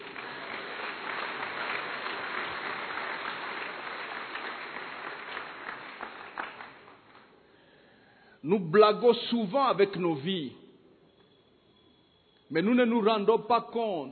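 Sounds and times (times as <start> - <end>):
congregation applause during a French-language sermon: 0.0 - 7.4
speech: 8.4 - 10.6, 12.5 - 14.1.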